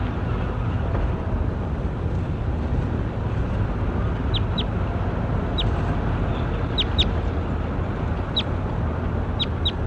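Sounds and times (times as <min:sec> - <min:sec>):
constant loud low rumbling noise: 0:00.0 - 0:09.8
bird chirping: 0:04.3 - 0:04.8, 0:05.5 - 0:07.2, 0:08.2 - 0:08.6, 0:09.3 - 0:09.8.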